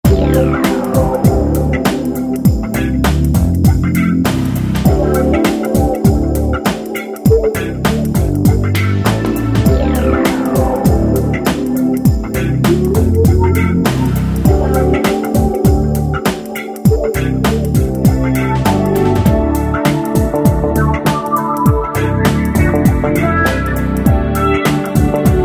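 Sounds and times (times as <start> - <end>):
techno music: 0.0 - 25.4.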